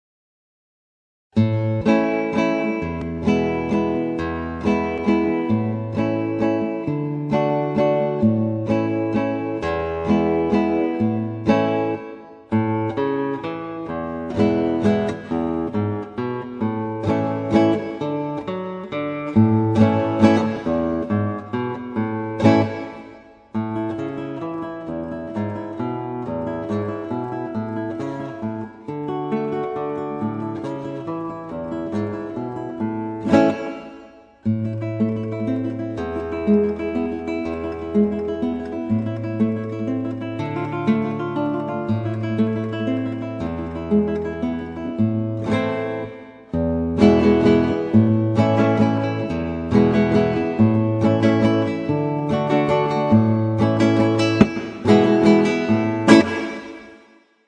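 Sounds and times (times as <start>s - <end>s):
Spanish guitar music: 1.4s - 57.4s.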